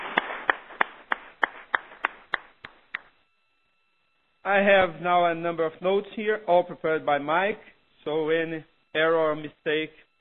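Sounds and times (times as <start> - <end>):
audience applause: 0.0 - 2.4
speech: 4.5 - 10.1.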